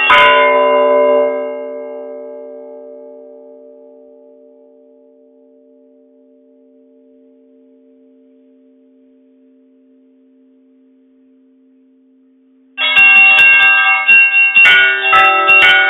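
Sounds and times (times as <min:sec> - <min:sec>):
church bells pealing: 0:00.0 - 0:05.9, 0:12.8 - 0:15.8.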